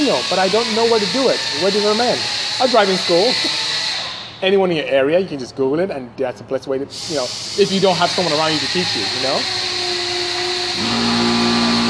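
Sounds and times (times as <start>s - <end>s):
speech: 0.0s - 3.7s, 4.4s - 9.7s
air compressor running: 0.0s - 4.4s, 6.9s - 11.8s.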